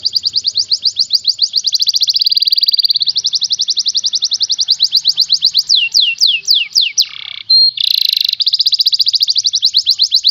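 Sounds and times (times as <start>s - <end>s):
contest champion canary singing fast trills: 0.0s - 10.3s.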